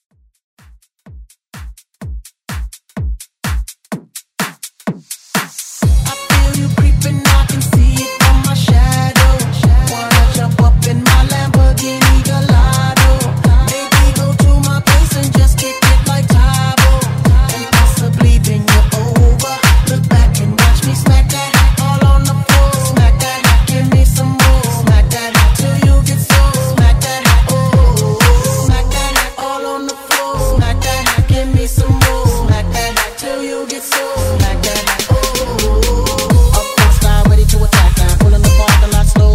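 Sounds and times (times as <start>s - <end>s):
house remix: 0.6s - 39.3s.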